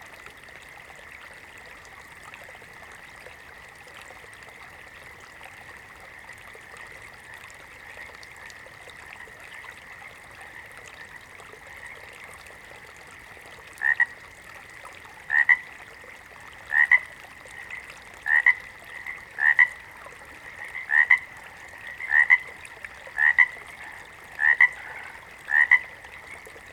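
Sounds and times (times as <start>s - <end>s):
water frog double croaks: 13.8s - 14.2s, 15.3s - 15.7s, 16.7s - 26.4s.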